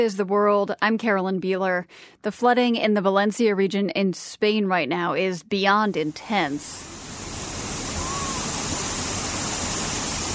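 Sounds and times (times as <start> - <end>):
speech: 0.0 - 7.0
wind pounding a town: 6.0 - 10.3
heavy rain pounding a town: 6.1 - 10.3.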